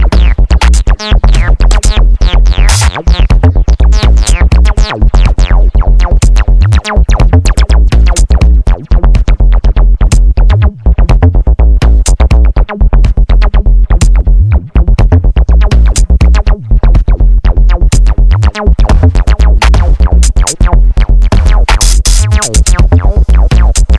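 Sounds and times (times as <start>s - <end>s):
drum machine bassline: 0.0s - 23.9s.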